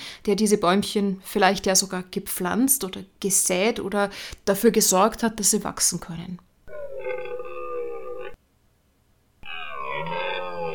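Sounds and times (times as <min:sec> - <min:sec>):
speech: 0:00.2 - 0:06.5
red deer stag bellowing: 0:06.7 - 0:08.4, 0:09.4 - 0:10.7.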